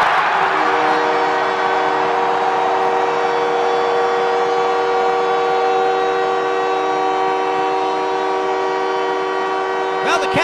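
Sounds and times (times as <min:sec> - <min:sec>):
arena crowd cheering after hockey goal: 0:00.0 - 0:10.4
hockey goal horn blaring: 0:00.0 - 0:10.4.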